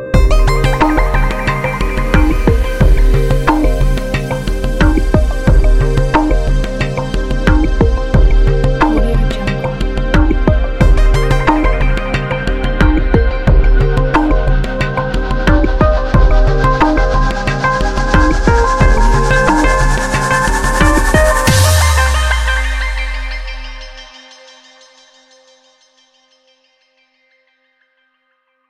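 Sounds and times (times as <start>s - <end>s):
space intro music: 0.2s - 24.5s.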